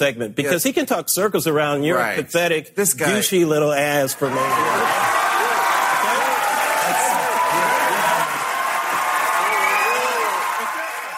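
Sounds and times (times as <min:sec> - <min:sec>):
speech: 0:00.0 - 0:05.2
crowd cheering: 0:04.1 - 0:11.1.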